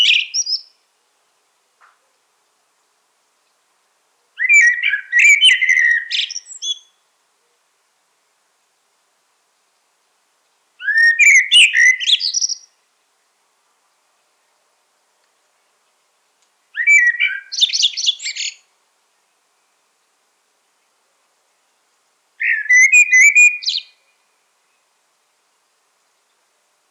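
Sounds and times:
common blackbird twittering song: 0:00.0 - 0:00.7, 0:04.4 - 0:06.9, 0:10.8 - 0:12.7, 0:16.8 - 0:18.6, 0:22.4 - 0:24.0.

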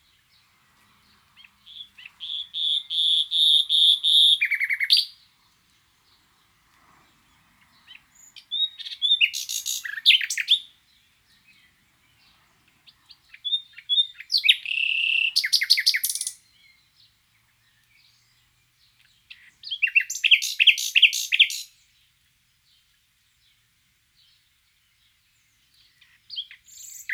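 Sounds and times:
common nightingale song of whistles and trills: 0:01.4 - 0:05.2, 0:07.7 - 0:22.0, 0:25.7 - 0:27.1.

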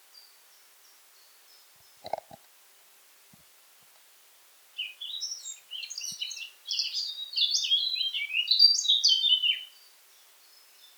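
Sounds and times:
Eurasian blackcap song: 0:04.8 - 0:10.9.

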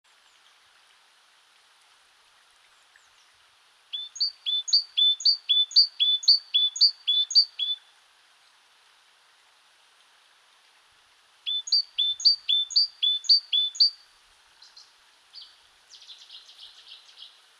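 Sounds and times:
great tit two-note whistled song: 0:04.0 - 0:07.8, 0:11.5 - 0:14.0.

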